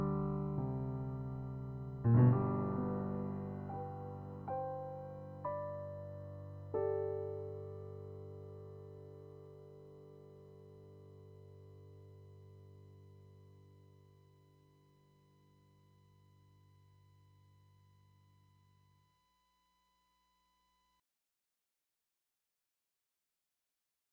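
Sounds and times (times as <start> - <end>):
piano: 0.0 - 16.4.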